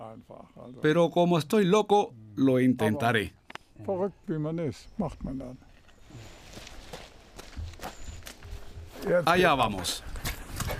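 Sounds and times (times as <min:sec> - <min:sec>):
speech: 0:00.2 - 0:06.3, 0:09.0 - 0:10.7
footsteps of an 81-year-old man running up stone steps: 0:05.7 - 0:10.7.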